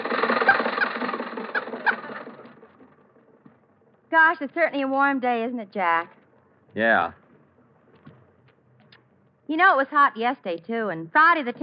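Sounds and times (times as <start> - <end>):
car engine sound effect for a chauffeur-driven ride: 0.0 - 4.8
speech: 4.1 - 6.2, 6.8 - 7.2, 9.5 - 11.6.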